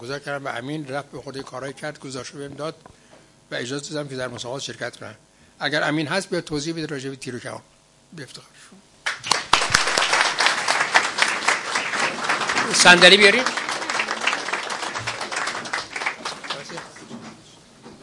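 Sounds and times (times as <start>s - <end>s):
speech: 0.0s - 9.4s, 12.7s - 13.6s
audience clapping for archery team member: 9.0s - 17.5s.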